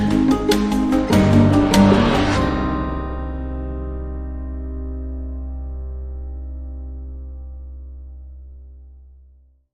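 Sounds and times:
short musical sting: 0.1 - 5.3.

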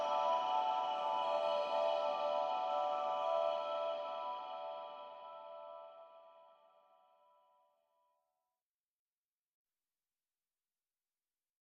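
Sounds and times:
underscore music with huge reverb: 0.0 - 5.6.

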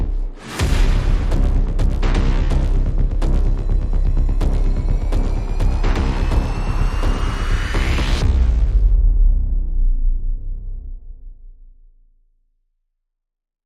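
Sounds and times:
bass synths: 0.0 - 11.4
sound effects: 0.4 - 8.8.

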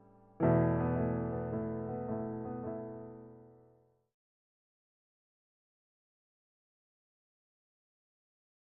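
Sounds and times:
introspective piano etude: 0.0 - 3.8.

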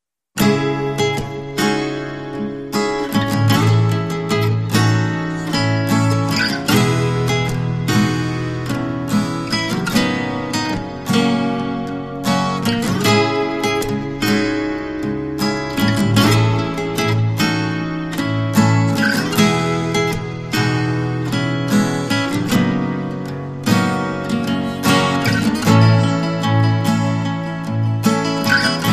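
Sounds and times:
guitars: 0.4 - 28.9.

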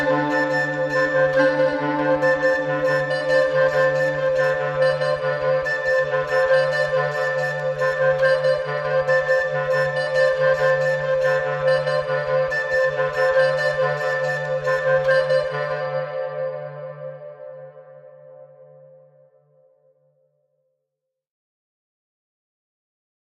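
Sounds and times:
woodwinds playing: 0.0 - 18.5.

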